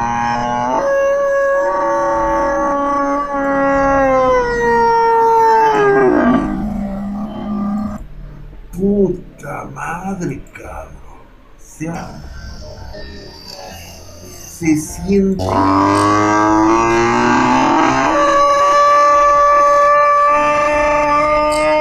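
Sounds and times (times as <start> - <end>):
bull mooing: 0.0 - 8.0, 15.4 - 21.7
person talking: 8.7 - 16.1.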